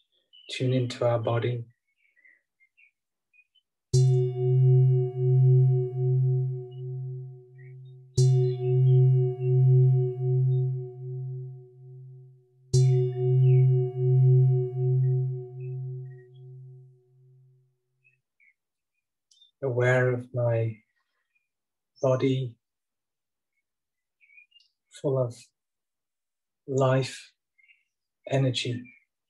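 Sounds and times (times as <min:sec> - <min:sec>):
speech: 0:00.5 - 0:01.7, 0:22.2 - 0:22.5, 0:25.1 - 0:25.6, 0:26.7 - 0:27.3, 0:28.3 - 0:29.0
meditation bell strikes: 0:04.0 - 0:12.2, 0:12.8 - 0:16.8.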